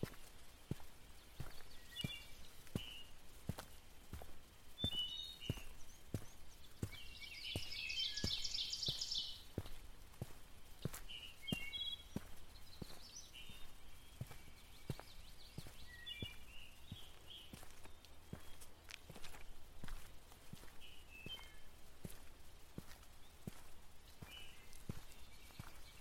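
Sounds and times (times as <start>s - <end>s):
birds chirping: 0.0s - 25.9s
footsteps on a walking path: 0.0s - 25.9s.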